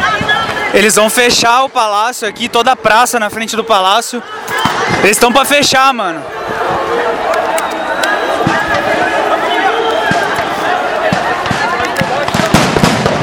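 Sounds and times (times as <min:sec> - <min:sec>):
noisy crowd: 0:00.0 - 0:13.2
speech: 0:00.7 - 0:06.7
bombs exploding during a street clash with police: 0:11.0 - 0:13.2.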